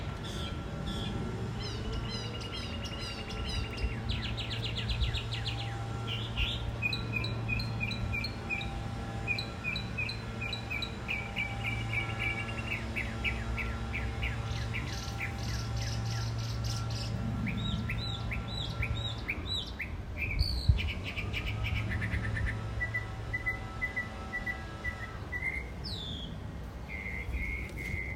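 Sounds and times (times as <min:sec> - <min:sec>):
birds at a front porch: 0:00.0 - 0:28.1.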